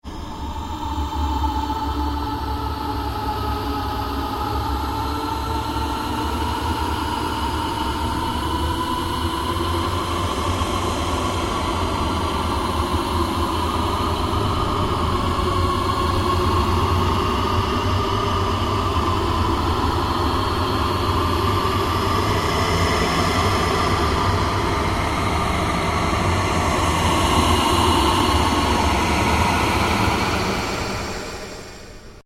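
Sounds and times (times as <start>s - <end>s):
ambient drone: 0.1s - 32.2s.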